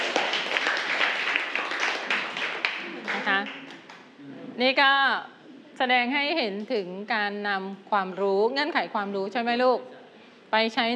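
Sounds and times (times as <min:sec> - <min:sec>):
group clapping hands: 0:00.0 - 0:04.1
speech: 0:04.6 - 0:10.9.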